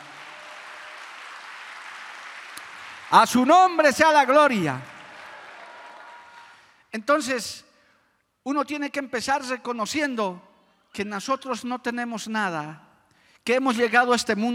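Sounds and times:
applause: 0.0 - 6.8
speech: 3.1 - 4.9, 6.9 - 7.7, 8.4 - 14.5.

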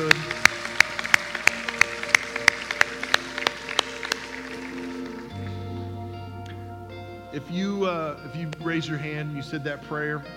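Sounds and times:
audience clapping in a steady even rhythm: 0.0 - 6.6
soft sustained musical tones: 0.0 - 10.3
speech: 7.4 - 10.3.

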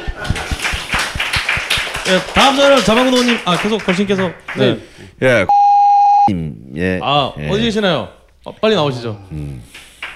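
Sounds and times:
crowd clapping in rhythm: 0.0 - 4.8, 9.7 - 10.1
speech: 2.1 - 5.6, 6.3 - 9.8.

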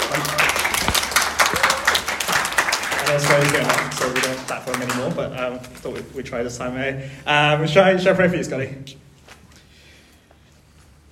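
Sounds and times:
audience clapping: 0.0 - 5.3
speech: 3.1 - 9.1.

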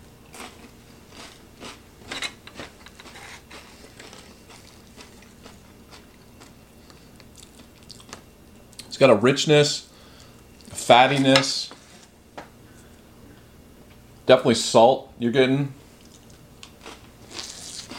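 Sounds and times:
chewing Underwood Premium Quality Deviled Ham Spread on a cracker: 0.2 - 8.9, 16.0 - 17.9
speech: 9.0 - 9.9, 10.9 - 11.8, 14.3 - 15.8.

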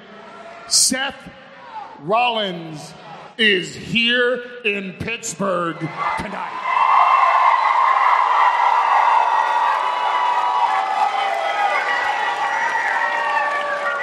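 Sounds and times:
speech: 0.7 - 1.4, 2.0 - 6.6
crowd cheering: 5.8 - 14.0.

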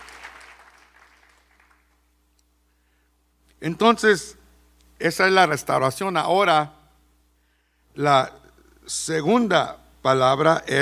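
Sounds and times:
audience applause: 0.0 - 2.0
speech: 3.6 - 4.4, 5.0 - 6.8, 8.0 - 10.8.

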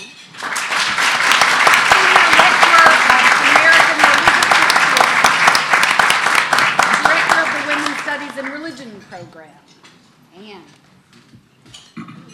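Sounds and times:
audience applause: 0.4 - 8.8.

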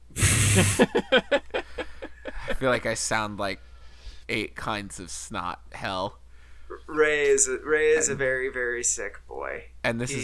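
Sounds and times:
nose blowing: 0.0 - 1.0
speech: 0.6 - 1.3, 2.6 - 3.7, 4.3 - 6.2, 6.9 - 10.2.

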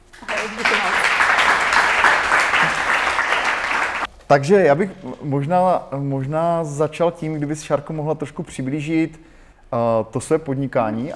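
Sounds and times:
audience applause: 0.0 - 4.1
speech: 4.3 - 11.1.

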